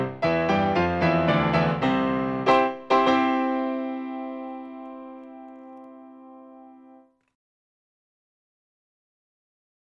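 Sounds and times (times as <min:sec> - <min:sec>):
piano: 0:00.0 - 0:07.3.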